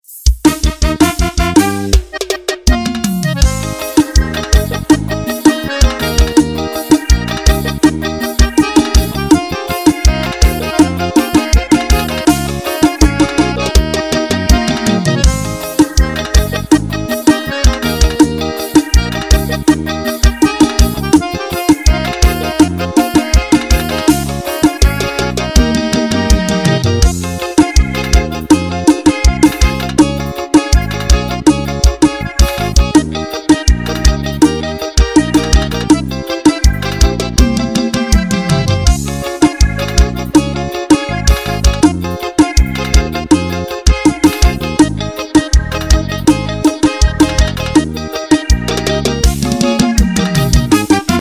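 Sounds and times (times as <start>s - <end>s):
forró music: 0.1s - 51.1s.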